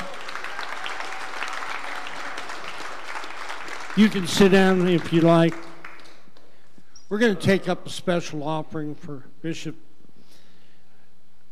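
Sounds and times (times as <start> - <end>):
people clapping hands: 0.0 - 6.7
speech: 4.0 - 5.7, 7.1 - 9.9.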